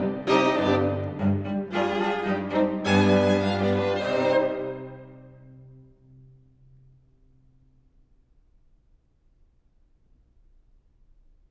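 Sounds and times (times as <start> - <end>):
string quartet playing a minuet in C minor: 0.0 - 5.5.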